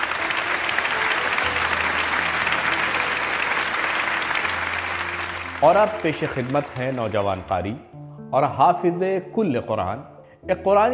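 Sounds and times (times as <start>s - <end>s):
loud audience applause: 0.0s - 7.6s
speech: 5.6s - 10.9s.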